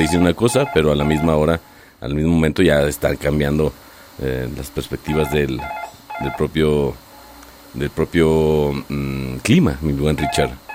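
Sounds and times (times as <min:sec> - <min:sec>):
telephone ringing: 0:00.0 - 0:01.4, 0:05.1 - 0:06.6
speech: 0:00.0 - 0:07.0, 0:07.7 - 0:10.6.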